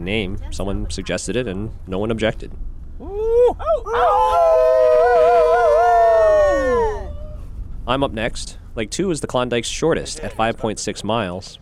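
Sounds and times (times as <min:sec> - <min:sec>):
speech: 0:00.0 - 0:05.5, 0:07.9 - 0:11.6
several people howling in imitation of wolves: 0:03.0 - 0:07.4.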